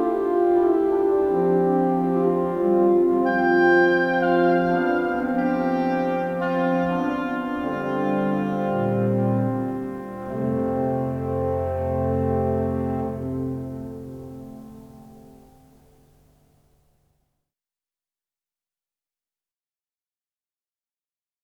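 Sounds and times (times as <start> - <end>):
oboe playing variations: 0.0 - 15.7.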